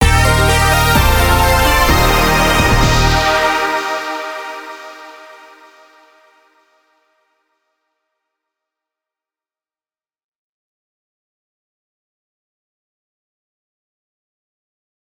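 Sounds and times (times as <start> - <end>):
fanfare: 0.0 - 5.8.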